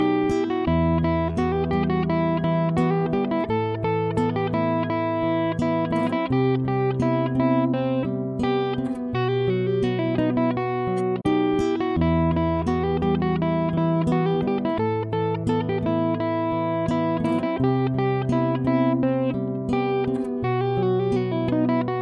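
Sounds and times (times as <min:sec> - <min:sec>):
instrumental music: 0:00.0 - 0:22.0.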